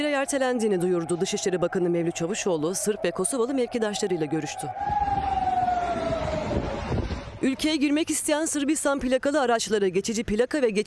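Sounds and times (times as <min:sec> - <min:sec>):
speech: 0:00.0 - 0:05.4, 0:07.4 - 0:10.8
protest sirens sounding: 0:00.0 - 0:08.1.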